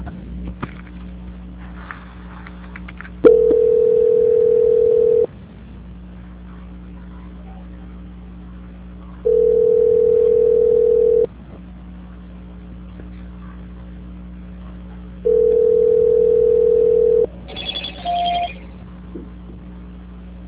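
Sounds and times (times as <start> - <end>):
low constant hum: 0.0 - 20.4
telephone line beeps during a call transfer: 3.3 - 5.3, 9.3 - 11.3, 15.3 - 18.6.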